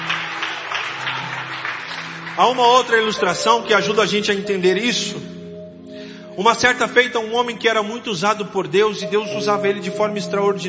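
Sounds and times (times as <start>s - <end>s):
audience applauding: 0.0s - 4.4s
speech: 2.4s - 5.4s, 6.4s - 10.6s.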